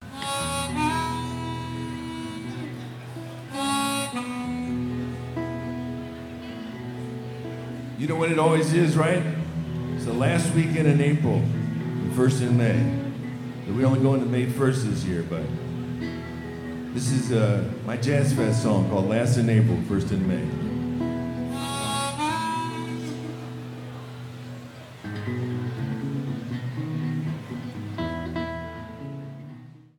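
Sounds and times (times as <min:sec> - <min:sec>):
guitar: 0:00.0 - 0:29.9.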